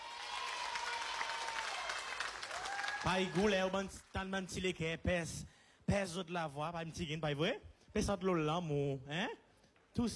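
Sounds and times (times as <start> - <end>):
audience applause: 0.0 - 3.8
speech: 3.0 - 9.4, 10.0 - 10.1.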